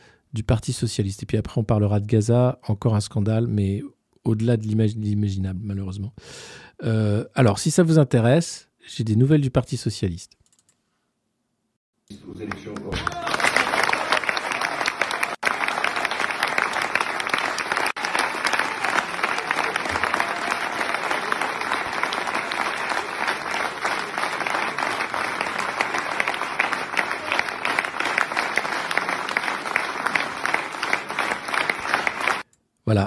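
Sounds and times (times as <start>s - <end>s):
speech: 0.3s - 10.4s, 12.1s - 13.2s
large crowd applauding former French president François Hollande at a Socialist Party event: 12.4s - 32.4s.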